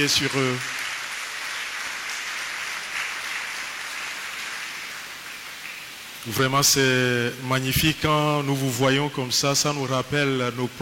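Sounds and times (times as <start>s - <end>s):
speech: 0.0s - 0.8s, 6.2s - 10.8s
church congregation applauding the newly baptized: 0.0s - 7.0s.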